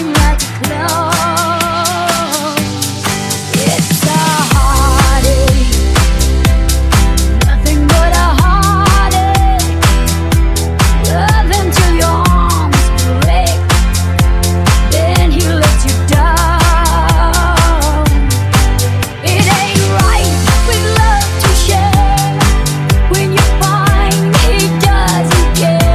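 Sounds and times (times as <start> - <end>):
funk music at 124 BPM: 0.0 - 25.9.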